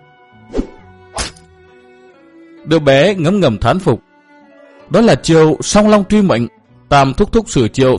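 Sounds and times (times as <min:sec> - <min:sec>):
sword striking into a body during a martial arts fight: 0:00.5 - 0:01.5
speech: 0:02.6 - 0:04.1, 0:04.9 - 0:07.9.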